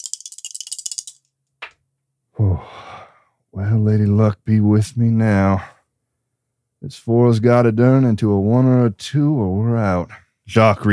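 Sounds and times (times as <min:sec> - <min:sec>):
dice being shaken and rolled: 0:00.0 - 0:01.3
speech: 0:02.4 - 0:02.9, 0:03.5 - 0:05.7, 0:06.8 - 0:10.9.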